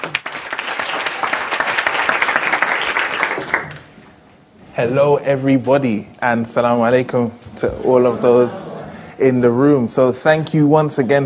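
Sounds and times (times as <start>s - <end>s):
audience applause: 0.0s - 3.8s
speech: 4.8s - 8.6s, 9.2s - 11.2s.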